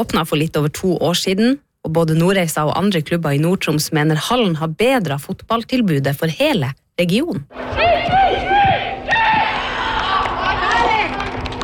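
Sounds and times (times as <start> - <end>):
speech: 0.0 - 8.4
teammates cheering at football practice: 7.7 - 11.6.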